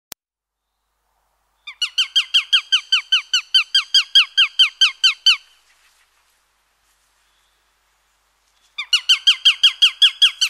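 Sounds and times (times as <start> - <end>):
Eurasian sparrowhawk kek calls: 1.6 - 6.0, 8.8 - 10.4.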